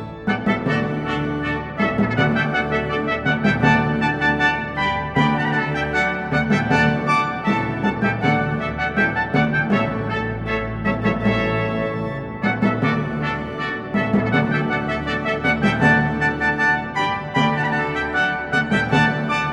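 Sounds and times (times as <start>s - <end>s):
baroque trumpet fanfare: 0.1s - 19.5s.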